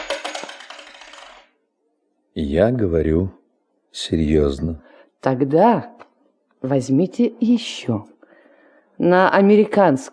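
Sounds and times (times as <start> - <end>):
coin dropped as a donation clattering: 0.0 - 1.6
speech: 2.4 - 5.9, 6.6 - 8.1, 9.0 - 10.1.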